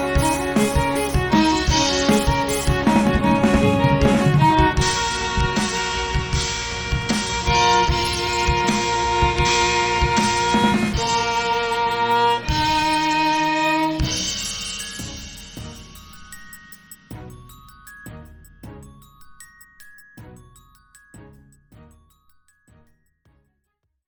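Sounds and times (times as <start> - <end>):
drums and violin cover: 0.0 - 19.2.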